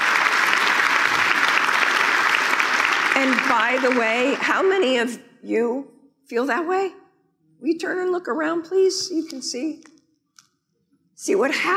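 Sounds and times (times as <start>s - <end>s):
crowd clapping: 0.0s - 4.9s
speech: 3.2s - 7.0s, 7.6s - 9.9s, 11.2s - 11.7s.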